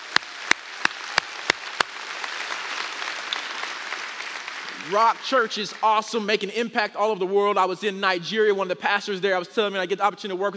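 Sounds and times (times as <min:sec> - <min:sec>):
audience hand clapping: 0:00.0 - 0:06.2
speech: 0:04.8 - 0:10.5.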